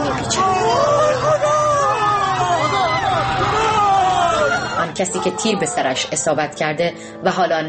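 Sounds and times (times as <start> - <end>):
wounded and shot people moaning: 0.0 - 6.0
crowd shouting while going to help: 0.0 - 6.1
speech: 5.0 - 7.6.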